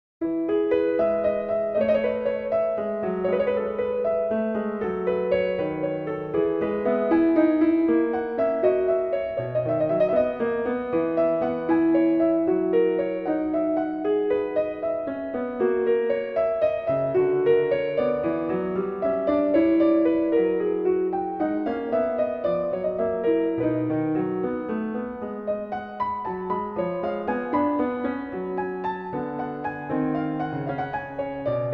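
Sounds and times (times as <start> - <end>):
prelude: 0.2 - 31.7.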